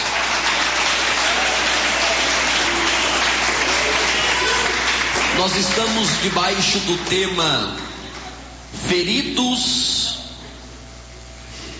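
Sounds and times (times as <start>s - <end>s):
audience clapping hands: 0.0s - 8.4s
speech: 5.4s - 7.9s, 8.8s - 10.0s.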